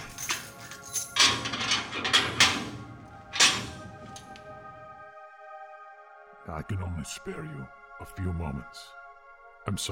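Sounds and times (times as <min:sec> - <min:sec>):
door being unlocked: 0:00.0 - 0:05.0
speech: 0:06.5 - 0:09.0, 0:09.6 - 0:09.9.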